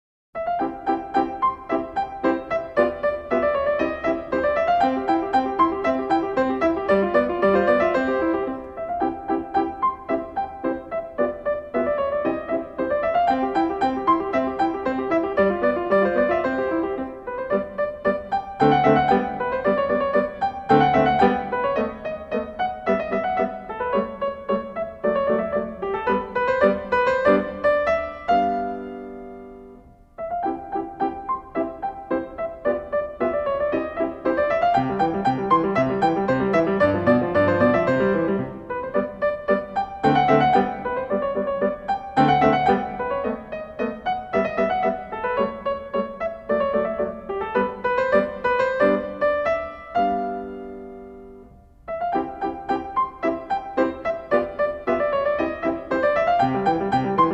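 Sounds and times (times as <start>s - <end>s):
sonatina in C major: 0.4s - 57.3s.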